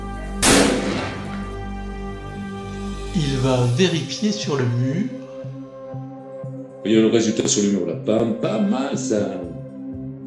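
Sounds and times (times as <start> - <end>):
gunshot aimed at a wall: 0.4 - 1.6
speech: 3.1 - 5.2, 6.8 - 9.6.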